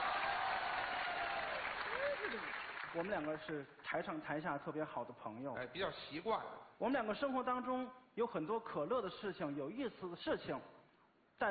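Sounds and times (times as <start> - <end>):
audience applause at a Chinese crosstalk comedy show: 0.0 - 3.5
speech: 2.3 - 10.8.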